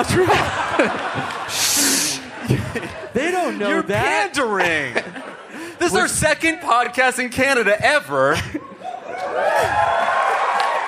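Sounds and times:
speech: 0.0 - 1.8, 2.5 - 5.2, 5.8 - 8.7
live audience cheering and applause: 0.0 - 2.4, 8.8 - 10.8
laughter: 0.0 - 6.7, 8.2 - 10.6.

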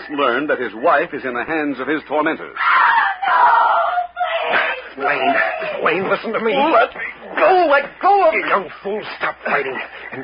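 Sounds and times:
speech: 0.1 - 2.8, 4.5 - 10.2
woman screaming in the night: 2.6 - 5.8
laughter: 4.0 - 10.2.

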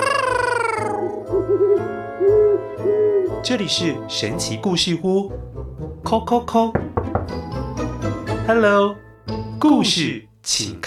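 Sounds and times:
owl hooting: 0.0 - 3.5
speech: 3.4 - 7.5, 8.5 - 10.8.

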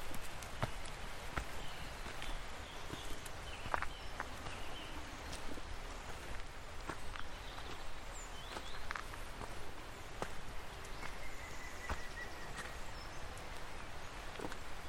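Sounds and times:
rain-swollen stream rushing in a Welsh rainforest: 0.0 - 14.8
thin bird calls and whistled phrases: 0.6 - 14.8.

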